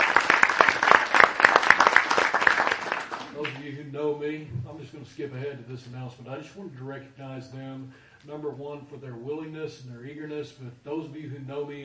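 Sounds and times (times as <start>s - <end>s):
crowd applause: 0.0s - 3.6s
speech: 4.0s - 11.8s.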